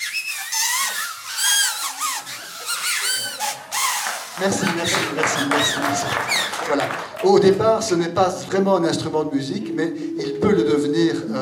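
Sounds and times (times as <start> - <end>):
paper whistles being blown: 0.0 - 7.2
speech: 4.4 - 10.8.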